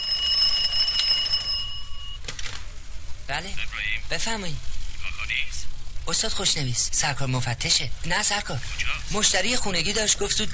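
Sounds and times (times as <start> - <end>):
wall telephone ringing with shrill metallic bell: 0.0 - 2.2
low rumble: 1.5 - 10.5
speech: 3.3 - 5.4, 6.1 - 10.5.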